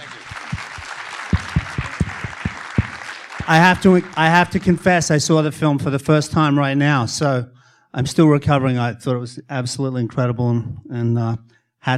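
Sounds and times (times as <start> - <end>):
audience applause: 0.0 - 5.0
speech: 3.5 - 11.9.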